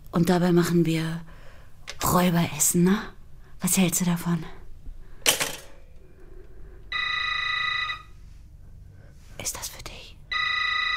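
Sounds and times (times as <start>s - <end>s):
speech: 0.2s - 1.4s, 2.0s - 4.6s
brief clattering noise: 5.2s - 5.9s
telephone ringing: 6.9s - 8.2s, 10.3s - 10.9s.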